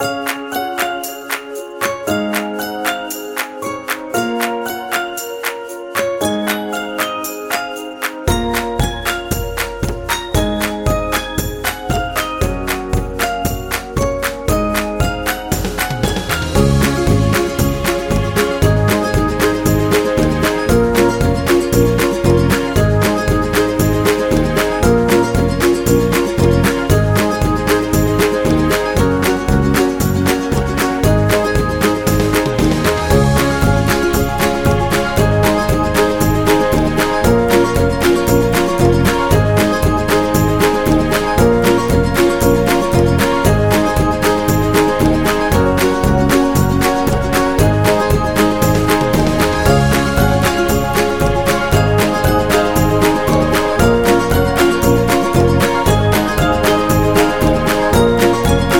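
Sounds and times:
ukulele playing a song: 0:00.0 - 0:58.7.

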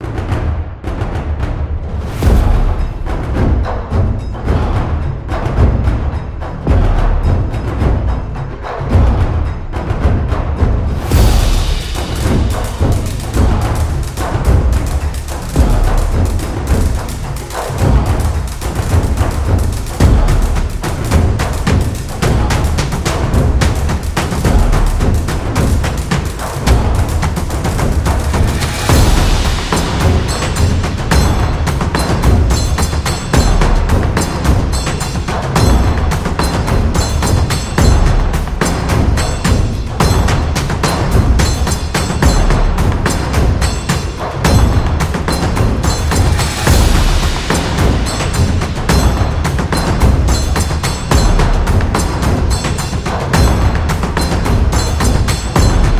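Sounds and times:
Japanese taiko drums: 0:00.0 - 0:55.9.

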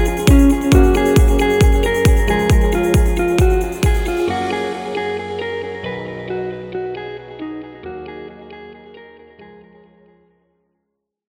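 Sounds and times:
positive corporate music loop: 0:00.0 - 0:05.4.

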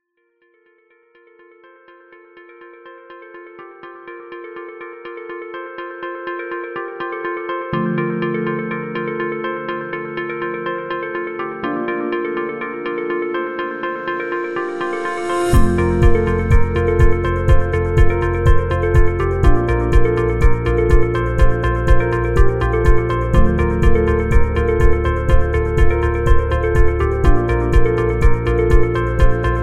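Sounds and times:
corporate music: 0:06.8 - 0:29.6.

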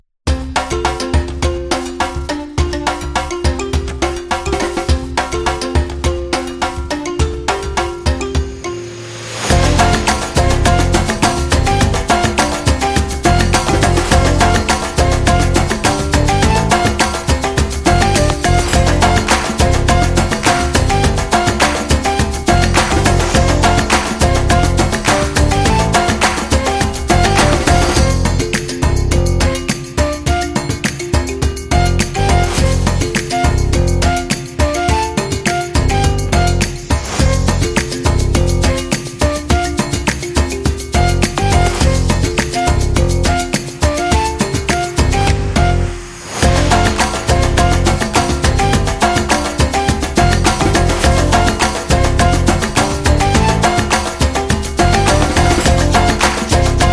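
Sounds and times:
Zulu African tribal music: 0:00.3 - 0:56.9.

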